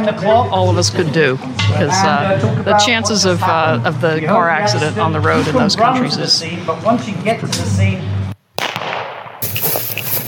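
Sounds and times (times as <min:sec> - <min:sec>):
speech: 0:00.0 - 0:08.1
bullet just missing: 0:08.5 - 0:10.2.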